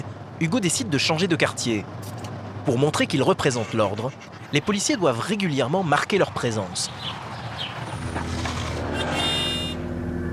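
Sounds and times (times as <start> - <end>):
speech: 0.4 - 7.3
two-wheeler horn honk: 7.9 - 10.3.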